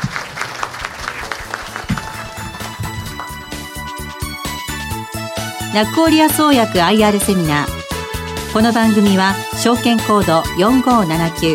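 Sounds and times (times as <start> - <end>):
audience applause: 0.0 - 4.5
speech: 5.7 - 7.8, 8.5 - 11.5.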